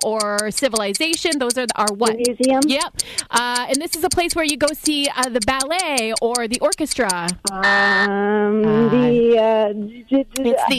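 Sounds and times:
speech: 0.0s - 10.7s
game buzzer: 7.5s - 8.1s.

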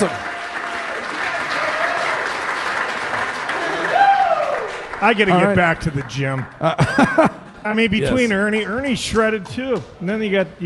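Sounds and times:
speech: 0.0s - 0.2s, 5.0s - 10.6s
applause: 0.0s - 6.8s
laughter: 6.6s - 8.3s.

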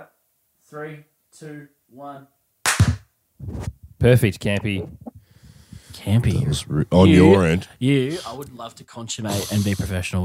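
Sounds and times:
speech: 0.0s - 2.4s, 3.4s - 5.1s, 6.0s - 10.2s
hand clap for sync: 2.6s - 3.0s.

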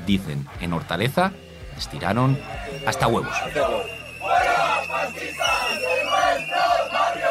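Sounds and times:
speech: 0.1s - 6.5s
protesters shouting at a politician: 1.4s - 7.2s.

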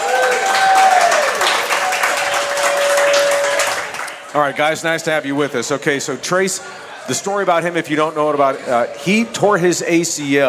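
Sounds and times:
audience applause on a coaches' show: 0.0s - 4.5s
speech: 4.4s - 10.4s.

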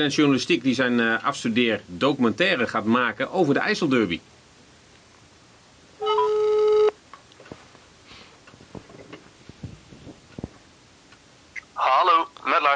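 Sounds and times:
speech: 0.0s - 4.3s
ringback tone of an outgoing phone call: 6.0s - 7.0s.

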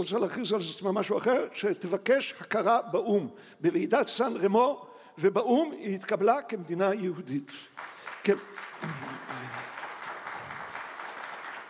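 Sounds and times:
speech: 0.0s - 9.4s
audience applause: 7.8s - 11.6s.

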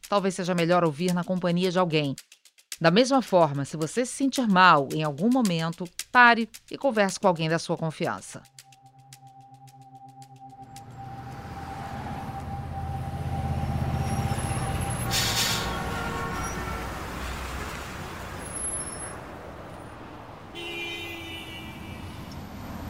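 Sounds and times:
speech: 0.1s - 8.6s
thin engine whine: 8.7s - 16.9s
downtown street traffic rumble of cars and buses: 10.5s - 22.8s
brief horn toots: 10.8s - 17.6s, 20.5s - 22.2s
air brake hiss: 15.1s - 15.8s.

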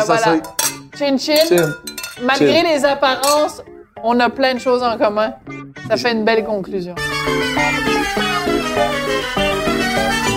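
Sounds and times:
speech: 0.0s - 10.2s
glasses clinking in a toast: 0.1s - 3.6s.

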